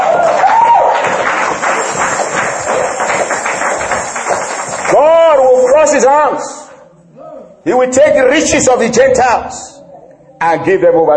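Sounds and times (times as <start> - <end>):
audience hand clapping: 0.0 - 6.0
speech: 5.8 - 6.6, 7.6 - 9.7, 10.4 - 11.1.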